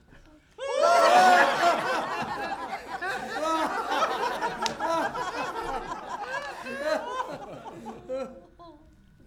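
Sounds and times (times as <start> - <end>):
audience laugh track: 0.7 - 8.8.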